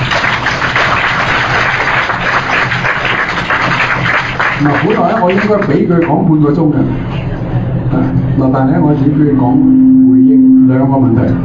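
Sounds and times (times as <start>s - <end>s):
audience applause welcoming a speaker: 0.0s - 6.2s
speech: 4.6s - 7.1s, 8.4s - 11.4s.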